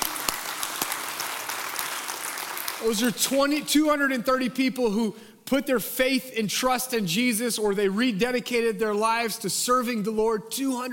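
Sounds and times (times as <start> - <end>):
audience applause: 0.0 - 3.3
speech: 2.8 - 10.9.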